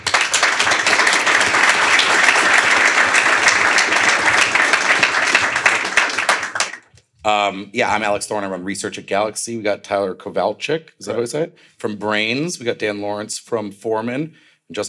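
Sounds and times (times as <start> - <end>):
audience applause: 0.0 - 6.9
speech: 7.2 - 14.8.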